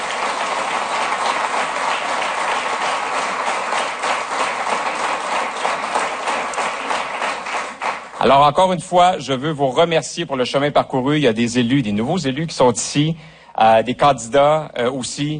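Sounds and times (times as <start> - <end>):
audience applause: 0.0 - 8.6
speech: 8.2 - 15.3.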